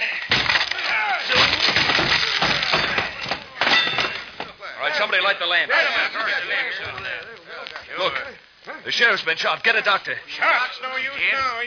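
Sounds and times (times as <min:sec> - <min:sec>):
wooden door being broken down: 0:00.3 - 0:04.6
speech: 0:05.3 - 0:07.2, 0:08.9 - 0:11.6.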